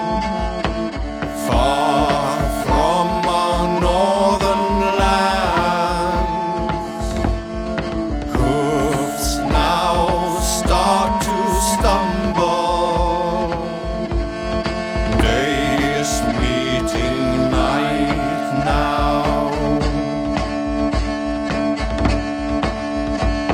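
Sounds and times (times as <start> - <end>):
vocal chorus: 0.0 - 7.4, 8.3 - 21.0
drum: 0.0 - 23.5
flute: 0.0 - 23.5.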